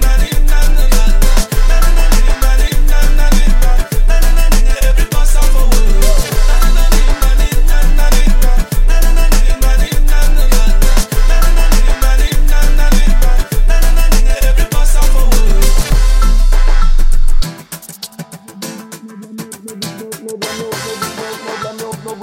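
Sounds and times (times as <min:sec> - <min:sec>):
low bass: 0:00.0 - 0:17.5.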